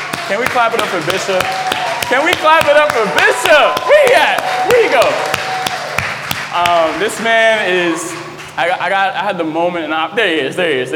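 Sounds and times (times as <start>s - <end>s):
audience clapping in rhythm: 0.0s - 8.9s
speech: 0.3s - 5.3s, 6.5s - 10.9s.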